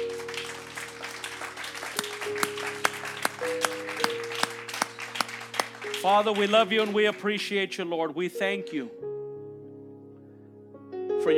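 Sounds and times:
round of applause: 0:00.0 - 0:07.6
speech: 0:06.0 - 0:09.1.

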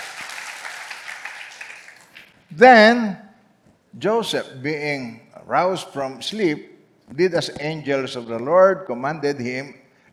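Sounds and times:
church congregation clapping during a Christmas sermon: 0:00.0 - 0:02.5
speech: 0:02.5 - 0:03.2, 0:03.9 - 0:09.8.

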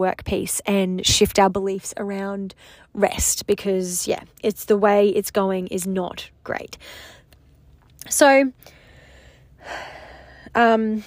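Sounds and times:
speech: 0:00.0 - 0:07.2, 0:08.0 - 0:08.8, 0:09.6 - 0:11.0
deep breath: 0:06.8 - 0:07.3, 0:08.6 - 0:11.0.

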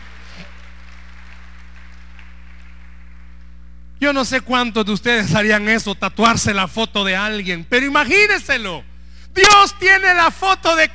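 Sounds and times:
audience applause: 0:00.0 - 0:03.5
low electrical hum: 0:00.0 - 0:10.9
speech: 0:04.0 - 0:10.9.

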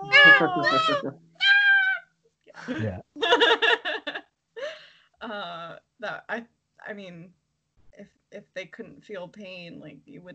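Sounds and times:
droid screaming sound effect, shrill warbling electronic squeals: 0:00.0 - 0:01.1
laughter: 0:00.0 - 0:01.1, 0:02.6 - 0:04.2
speech: 0:00.4 - 0:01.3, 0:02.6 - 0:03.7, 0:05.2 - 0:07.4, 0:08.0 - 0:10.3.

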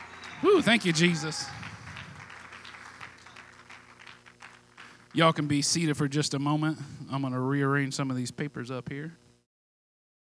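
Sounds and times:
audience hand clapping: 0:00.0 - 0:05.4
speech: 0:00.4 - 0:01.6, 0:05.2 - 0:09.2.

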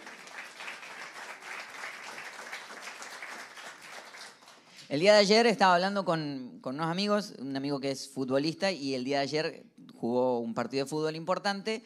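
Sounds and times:
audience applauding: 0:00.0 - 0:04.7
speech: 0:04.9 - 0:11.8.

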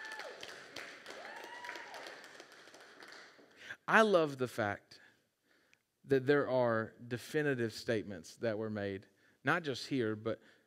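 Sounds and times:
audience clapping: 0:00.0 - 0:03.6
speech: 0:03.9 - 0:04.9, 0:06.1 - 0:10.6.

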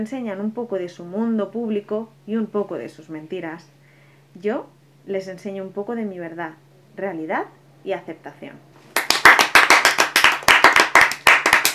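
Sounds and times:
speech: 0:00.0 - 0:03.8, 0:04.4 - 0:08.7
applause: 0:08.9 - 0:11.7.

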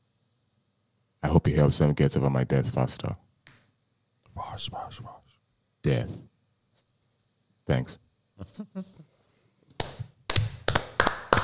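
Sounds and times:
speech: 0:01.2 - 0:03.2, 0:04.6 - 0:05.2, 0:05.8 - 0:06.3, 0:07.7 - 0:09.1
slow clap: 0:09.8 - 0:11.4.

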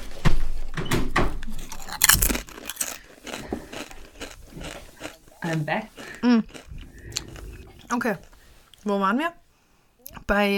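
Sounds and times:
crunching a potato chip: 0:01.5 - 0:07.4
speech: 0:05.4 - 0:06.6, 0:07.9 - 0:09.4, 0:10.3 - 0:10.5.

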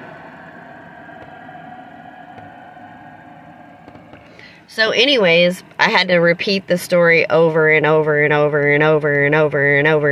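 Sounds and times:
loud airplane passing overhead: 0:00.0 - 0:04.7
speech: 0:04.7 - 0:10.0.

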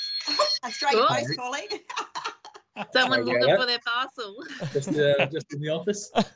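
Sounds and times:
phone ringing: 0:00.0 - 0:02.2, 0:03.0 - 0:04.6
laughter: 0:00.2 - 0:03.8, 0:04.4 - 0:06.3
speech: 0:00.6 - 0:02.1, 0:02.8 - 0:06.3.

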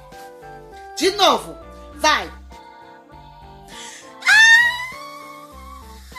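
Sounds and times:
speech: 0:01.0 - 0:02.4
loud scream: 0:04.2 - 0:05.2.

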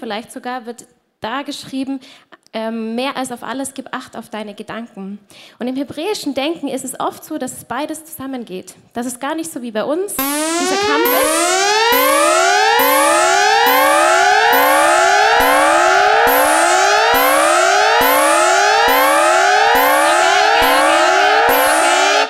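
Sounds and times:
speech: 0:00.0 - 0:12.3
electronic alarm siren wailing: 0:10.2 - 0:22.2.

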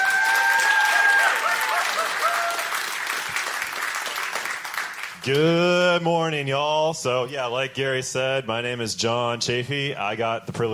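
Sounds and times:
audience applause for a speaker at a church gathering: 0:00.0 - 0:05.7
speech: 0:05.2 - 0:10.7.

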